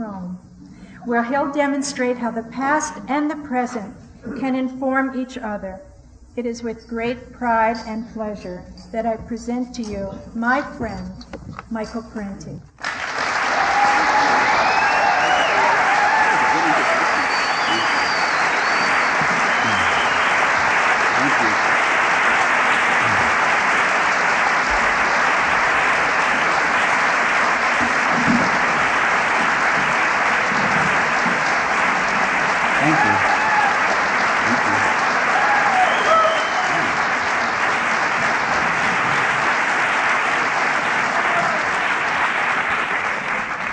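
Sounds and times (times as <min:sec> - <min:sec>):
speech: 0:00.4 - 0:12.8
audience applause welcoming a speaker: 0:12.8 - 0:43.7.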